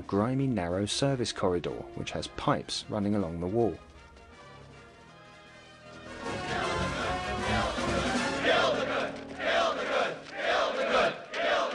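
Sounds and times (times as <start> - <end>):
speech: 0.1 - 3.9
crowd of pagans chanting: 6.1 - 11.7.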